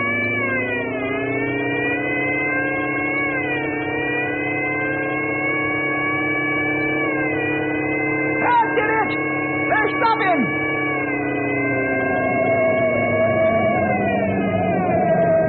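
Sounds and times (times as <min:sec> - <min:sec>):
car supercharger and emergency speed gear whining during a pursuit: 0:00.0 - 0:15.4.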